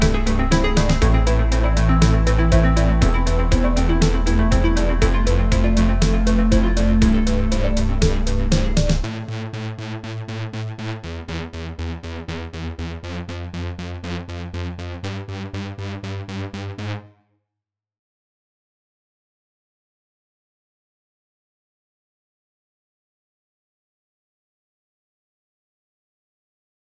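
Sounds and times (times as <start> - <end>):
synthwave music: 0.0 - 17.0.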